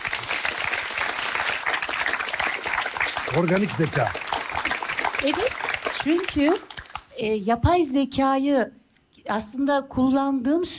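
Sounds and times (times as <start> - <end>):
audience applause: 0.0 - 7.0
speech: 3.3 - 4.3, 5.2 - 10.7.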